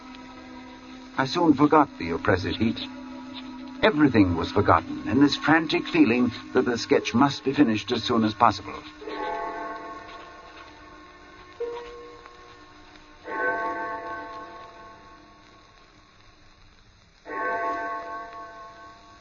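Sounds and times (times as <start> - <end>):
distant church clock bell striking: 0.0 - 15.5, 17.3 - 19.2
speech: 1.2 - 3.0, 3.8 - 9.0.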